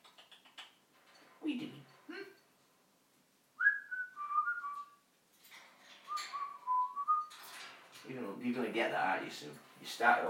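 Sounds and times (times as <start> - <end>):
speech: 1.4 - 2.3, 8.6 - 10.2
bird whistling: 3.6 - 4.9, 6.1 - 7.3.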